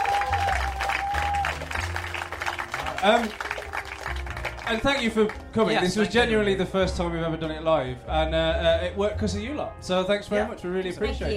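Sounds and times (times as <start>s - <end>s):
audience applause: 0.0s - 5.8s
speech: 3.0s - 3.5s, 4.7s - 11.3s.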